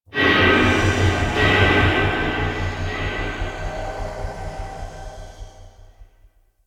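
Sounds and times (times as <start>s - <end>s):
intrusive echo effect: 0.1s - 6.3s.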